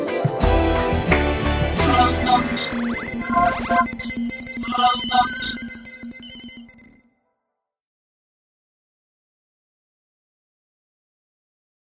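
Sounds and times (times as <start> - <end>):
karaoke singing: 0.0 - 3.9.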